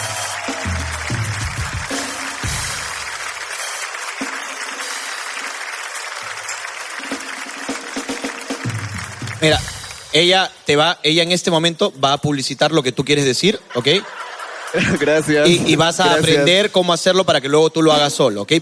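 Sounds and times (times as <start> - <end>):
audience applause for a guest at a Spanish-language event: 0.0 - 10.1
speech: 9.4 - 18.6
laughter: 13.5 - 16.7.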